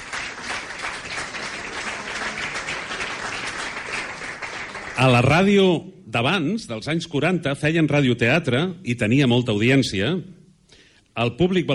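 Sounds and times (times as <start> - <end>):
audience applause: 0.0 - 5.3
speech: 5.0 - 10.4, 11.2 - 11.7.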